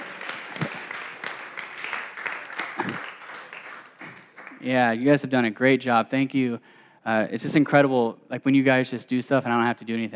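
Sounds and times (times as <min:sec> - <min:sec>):
audience clapping: 0:00.0 - 0:05.0
speech: 0:04.6 - 0:10.1.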